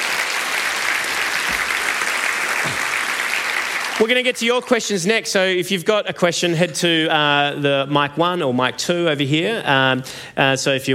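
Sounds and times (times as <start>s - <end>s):
audience applause: 0.0s - 4.3s
speech: 4.0s - 10.9s.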